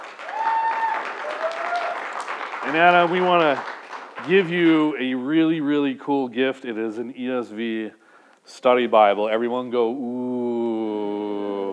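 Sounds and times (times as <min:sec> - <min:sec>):
crowd applauding: 0:00.0 - 0:05.0
faint high whistle or cheer: 0:00.2 - 0:02.1
speech: 0:02.6 - 0:10.8.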